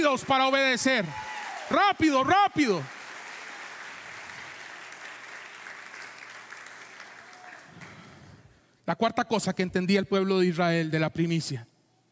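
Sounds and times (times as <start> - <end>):
speech: 0.0 - 3.0, 8.9 - 11.7
audience applauding: 0.0 - 8.4.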